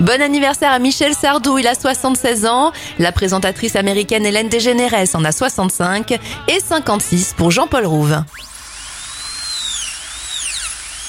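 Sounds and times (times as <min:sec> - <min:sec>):
speech: 0:00.0 - 0:08.5
dentist's drill whirring: 0:08.3 - 0:11.0.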